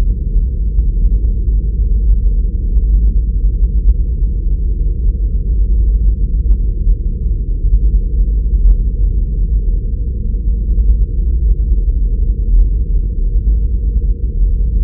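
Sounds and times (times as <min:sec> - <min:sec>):
deep rumbling sci-fi space drone: 0:00.0 - 0:14.8.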